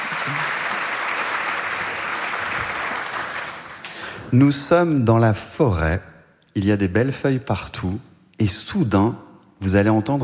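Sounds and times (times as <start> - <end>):
audience applause: 0.0 - 4.2
speech: 0.2 - 0.6, 4.3 - 10.2.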